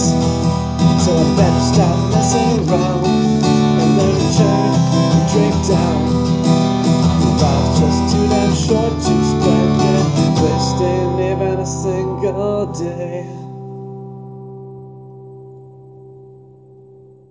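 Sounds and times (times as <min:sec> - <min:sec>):
person singing: 0:00.0 - 0:13.6
guitar: 0:00.0 - 0:17.3.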